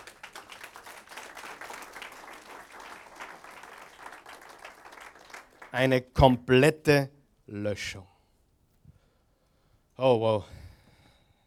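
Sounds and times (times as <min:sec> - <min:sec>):
audience applause: 0:00.0 - 0:05.9
speech: 0:05.7 - 0:08.1, 0:10.0 - 0:10.6.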